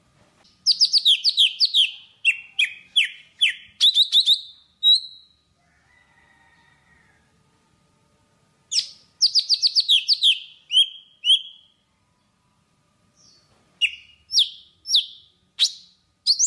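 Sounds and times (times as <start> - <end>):
Java sparrow singing: 0.6 - 5.4, 8.7 - 11.7, 13.2 - 16.4.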